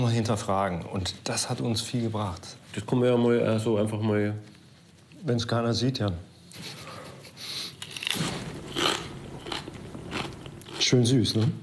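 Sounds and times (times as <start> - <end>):
speech: 0.0 - 4.5, 5.2 - 6.8, 10.9 - 11.6
raw cabbage being bitten and chewed: 7.9 - 11.5.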